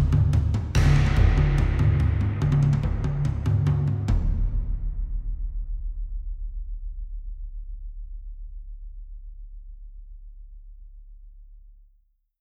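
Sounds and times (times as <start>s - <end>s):
drums in a forest: 0.0s - 8.6s.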